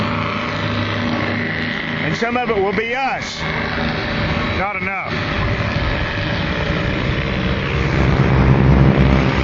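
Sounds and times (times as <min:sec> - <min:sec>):
Ford Trimotor propeller plane engines droning: 0:00.0 - 0:09.4
speech: 0:02.2 - 0:04.0, 0:04.6 - 0:05.2.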